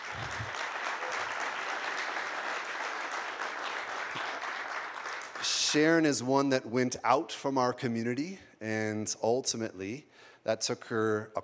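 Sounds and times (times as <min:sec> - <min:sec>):
audience applause welcoming a woman onto the stage: 0:00.0 - 0:05.6
speech: 0:05.7 - 0:11.4.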